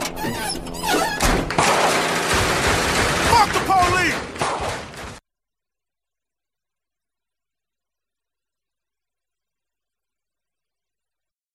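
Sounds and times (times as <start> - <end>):
door being kicked in: 0.2 - 5.2.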